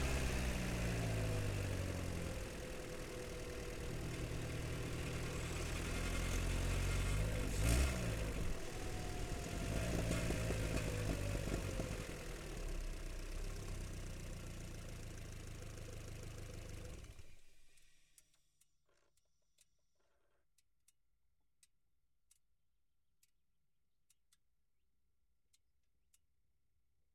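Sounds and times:
Citroen C5 engine onboard: 0.0 - 17.6.

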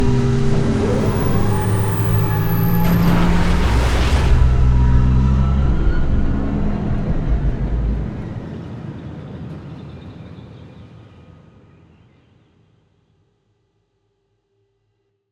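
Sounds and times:
space ship shutting down: 0.0 - 8.6.

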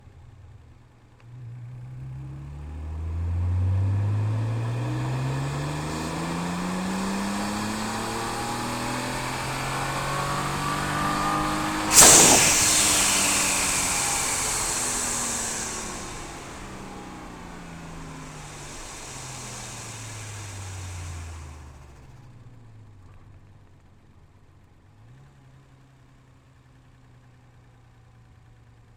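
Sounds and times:
2012 Nissan GT-R R35 engine during onboard drive on ramps: 2.4 - 21.7.

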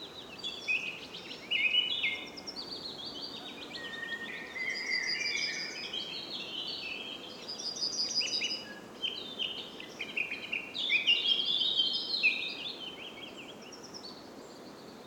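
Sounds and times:
Tree Pipit singing: 0.2 - 13.8.

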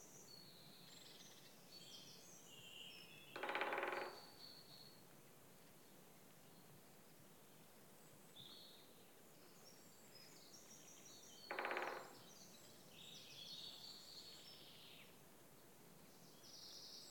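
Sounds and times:
woodpecker drumming with rapid wooden knocks: 3.3 - 4.4, 11.5 - 12.3.

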